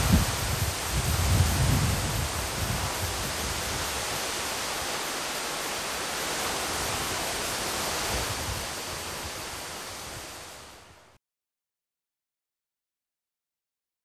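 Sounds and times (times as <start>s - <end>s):
rain in the woods: 0.0s - 11.2s.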